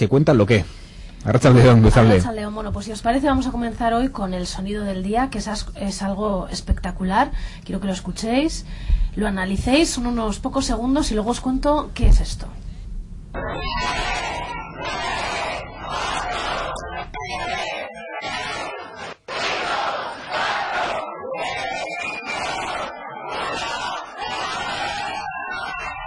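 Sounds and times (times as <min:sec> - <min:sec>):
speech: 0:00.0 - 0:12.7, 0:13.3 - 0:15.0
crowd shouting at H&M Roberto Cavalli collection launch in Madrid: 0:13.4 - 0:26.0
constant babble of voices: 0:13.6 - 0:26.0.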